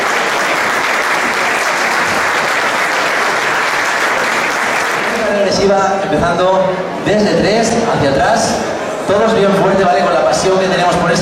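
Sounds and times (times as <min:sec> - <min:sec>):
sustained applause from a sizable audience: 0:00.0 - 0:05.6
speech: 0:05.6 - 0:11.1.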